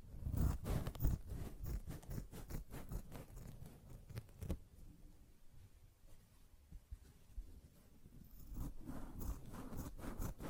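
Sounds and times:
sponge scratched and rubbed: 0.2 - 4.4, 8.3 - 10.4.

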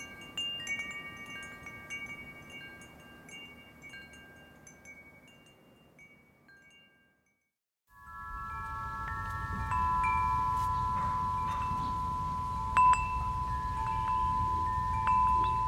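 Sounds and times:
wind chimes ringing in a gentle breeze: 0.0 - 15.6
low rumble of wind: 8.1 - 15.6.

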